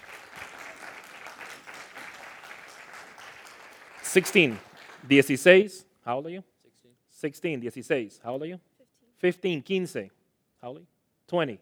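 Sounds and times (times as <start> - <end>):
audience applause: 0.0 - 5.4
speech: 4.1 - 6.5, 7.2 - 11.5.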